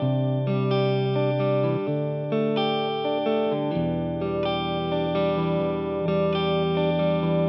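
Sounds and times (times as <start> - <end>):
guitar loop: 0.0 - 7.4.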